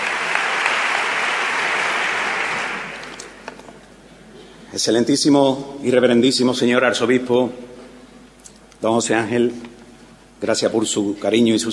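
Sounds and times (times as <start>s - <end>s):
large crowd applauding in an ovation: 0.0s - 3.4s
speech: 4.7s - 7.8s, 8.8s - 9.8s, 10.4s - 11.7s.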